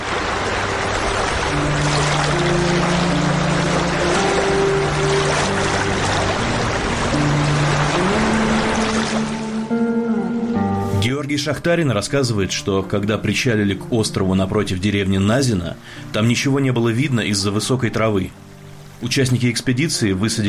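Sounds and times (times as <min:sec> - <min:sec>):
water splashing on hull: 0:00.0 - 0:09.7
river motorboat engine: 0:00.0 - 0:10.4
speech: 0:11.5 - 0:18.4, 0:19.0 - 0:20.4.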